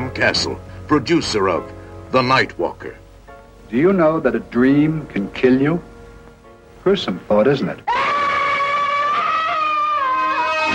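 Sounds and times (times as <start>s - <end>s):
speech: 0.2s - 3.0s, 3.7s - 5.9s, 6.8s - 7.9s
woman screaming in a nightmare: 7.9s - 10.7s.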